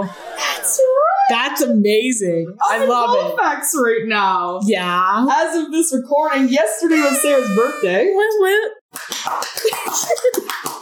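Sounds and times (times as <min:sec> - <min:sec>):
speech: 0:00.0 - 0:00.2, 0:01.3 - 0:10.7
hand claps: 0:08.9 - 0:10.8.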